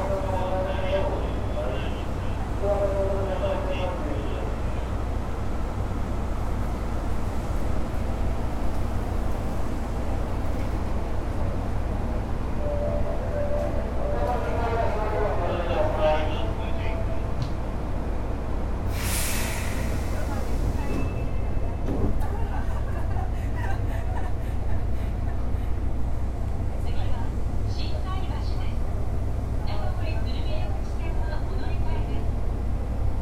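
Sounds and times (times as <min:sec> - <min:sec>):
Osaka Metro 10 series chopper train running on the Midosuji line: 0:00.0 - 0:33.2
sharp hiss: 0:18.9 - 0:20.4
laughter: 0:22.2 - 0:25.8.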